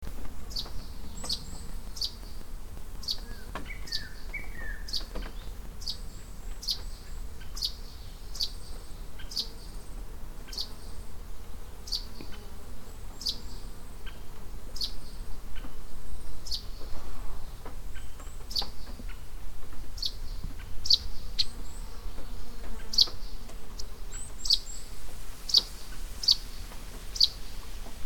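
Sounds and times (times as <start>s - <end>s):
background hiss: 0.0s - 28.0s
Russet sparrow song: 0.5s - 2.4s, 3.0s - 9.6s, 10.5s - 11.0s, 14.8s - 15.2s, 16.4s - 16.8s, 17.9s - 19.0s, 20.0s - 21.8s, 22.8s - 27.4s.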